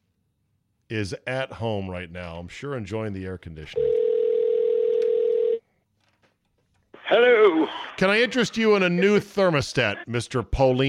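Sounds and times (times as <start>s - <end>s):
speech: 0.9s - 4.0s, 7.1s - 10.8s
telephone dial tone while calling: 3.8s - 5.6s
faint clicks and rustles: 5.9s - 6.9s.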